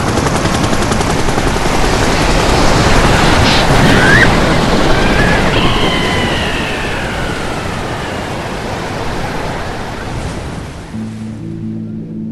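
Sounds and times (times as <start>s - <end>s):
helicopter crashing into sea waves: 0.0s - 11.0s
roar of churning water: 0.1s - 11.0s
faint high whining tones sliding: 3.3s - 10.2s.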